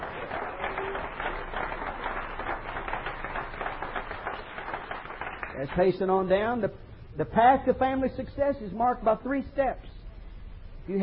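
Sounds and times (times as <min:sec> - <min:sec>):
audience clapping hands: 0:00.0 - 0:06.2
speech: 0:05.6 - 0:10.0, 0:10.9 - 0:11.0.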